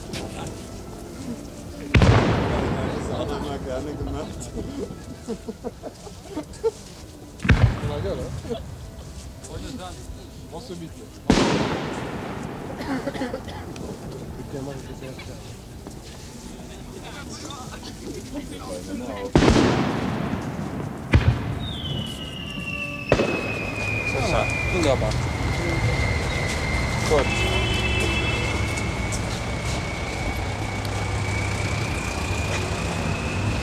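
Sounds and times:
laughter: 0.0s - 7.4s, 12.4s - 19.4s
firework whistling streak: 0.0s - 33.6s
low murmur of voices: 0.0s - 33.6s
fireworks bursting: 1.7s - 6.0s, 7.3s - 10.4s, 11.2s - 15.3s, 18.6s - 33.6s
speech: 3.4s - 7.0s, 7.8s - 8.8s, 9.5s - 12.2s, 12.8s - 16.1s, 17.4s - 20.4s, 24.2s - 25.3s, 27.1s - 27.5s.

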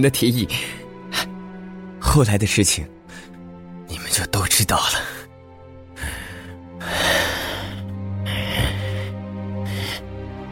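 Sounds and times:
speech: 0.0s - 1.3s, 2.1s - 3.3s, 4.2s - 5.2s
harsh wheezing breaths rasping in someone's throat: 6.0s - 10.2s.

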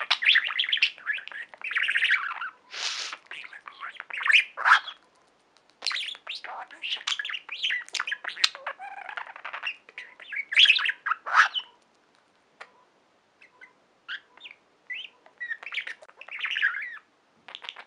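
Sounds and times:
budgerigar warbling and chirping: 0.0s - 5.0s, 5.8s - 11.8s, 13.4s - 17.8s.

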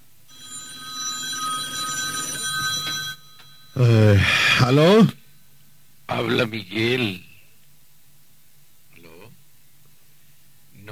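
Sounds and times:
telephone ringing: 0.3s - 5.1s
speech: 3.8s - 5.2s, 6.2s - 7.3s.

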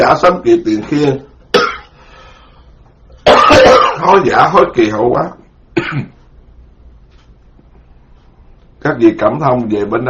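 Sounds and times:
speech: 0.0s - 1.3s, 3.5s - 6.1s, 8.8s - 10.0s
low quiet hum: 0.0s - 10.0s
speaker coughing from the cold: 1.5s - 2.0s, 3.2s - 4.1s, 5.8s - 6.2s.

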